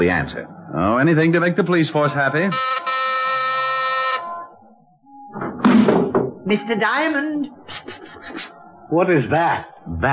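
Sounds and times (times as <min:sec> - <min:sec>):
speech: 0:00.0 - 0:02.9, 0:06.5 - 0:08.1, 0:08.9 - 0:10.1
doorbell ringing: 0:02.5 - 0:04.5.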